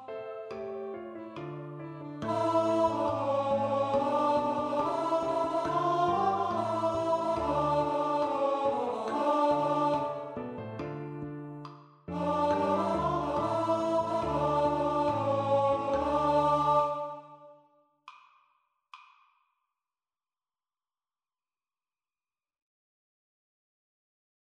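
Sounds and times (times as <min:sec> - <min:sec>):
tenor choir singing: 0:02.2 - 0:10.8, 0:12.1 - 0:17.6.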